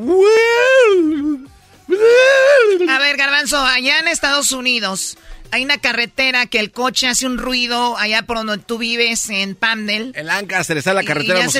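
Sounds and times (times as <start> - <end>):
speech: 0.0 - 0.4, 3.4 - 11.5
person imitating sea organ pipes sounding with waves: 0.0 - 3.0.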